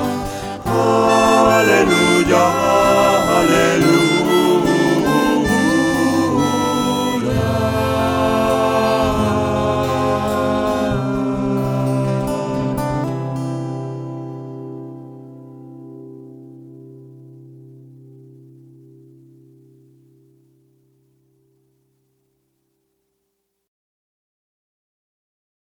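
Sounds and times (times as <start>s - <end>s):
people singing alleluia chant at mass: 0.0s - 13.7s.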